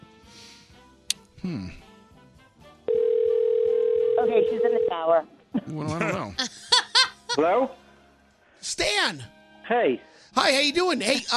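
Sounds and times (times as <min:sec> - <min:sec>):
speech: 0:01.4 - 0:01.9, 0:04.4 - 0:06.6, 0:07.4 - 0:07.8, 0:08.6 - 0:11.3
telephone line ringing tone: 0:02.9 - 0:05.0.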